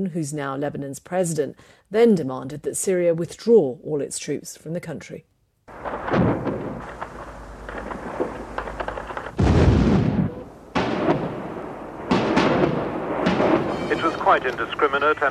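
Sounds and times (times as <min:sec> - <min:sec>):
speech: 0:00.0 - 0:06.5, 0:14.3 - 0:15.3
artillery shells exploding in a city: 0:05.7 - 0:15.3
steady low rumble: 0:05.7 - 0:15.3.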